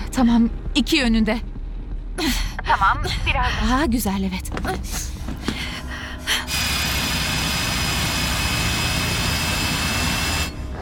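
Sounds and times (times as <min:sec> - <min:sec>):
speech: 0:00.1 - 0:01.5, 0:02.2 - 0:05.1
drilling: 0:06.3 - 0:10.7.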